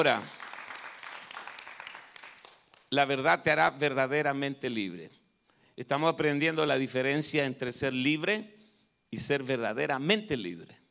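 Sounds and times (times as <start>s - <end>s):
speech: 0.0s - 0.4s, 2.9s - 5.2s, 5.8s - 10.8s
audience applause: 0.0s - 2.9s.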